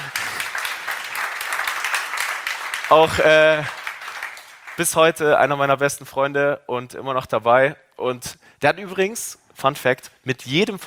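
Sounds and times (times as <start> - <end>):
roomful of people clapping for a longtime employee: 0.0 - 5.7
speech: 2.9 - 3.8, 4.8 - 10.8.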